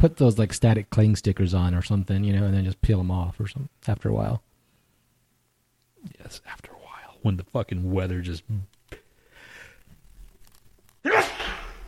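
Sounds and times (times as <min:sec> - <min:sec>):
speech: 0:00.0 - 0:04.5, 0:06.0 - 0:08.8
sneeze: 0:11.0 - 0:11.8.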